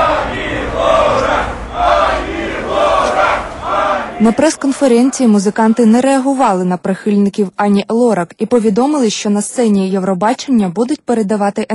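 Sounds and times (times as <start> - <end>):
youth crowd shouting hostile cries: 0.0 - 6.2
speech: 4.2 - 11.7.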